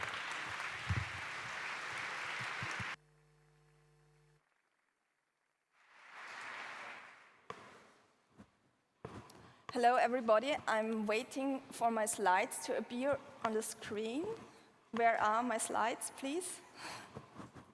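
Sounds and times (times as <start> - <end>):
applause: 0.0 - 3.0, 5.8 - 7.5
speech: 9.7 - 17.0.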